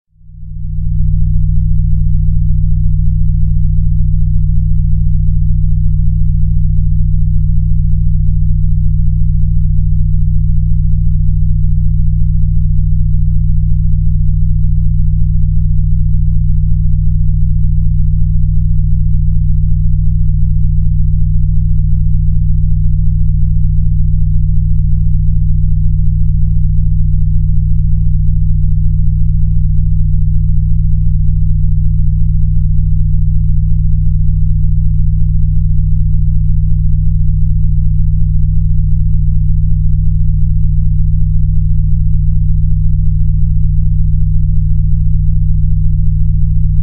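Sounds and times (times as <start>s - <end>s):
alpha brainwave enhancer tone: 0.2s - 46.8s.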